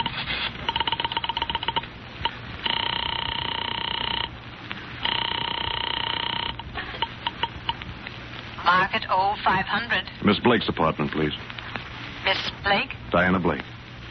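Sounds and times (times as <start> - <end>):
pay phone dialling clicks: 0.0 - 4.3, 5.0 - 7.8
steady electronic tones: 0.0 - 4.4, 5.0 - 7.8
speech: 8.9 - 11.5, 12.3 - 13.7.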